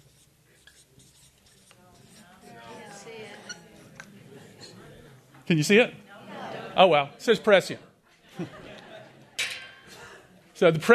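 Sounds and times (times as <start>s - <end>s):
chalk or marker scratching across a board during a lecture: 0.0s - 4.1s
speech: 5.5s - 6.0s, 6.8s - 8.6s, 10.6s - 10.9s
laughter: 6.1s - 7.1s, 8.1s - 10.5s.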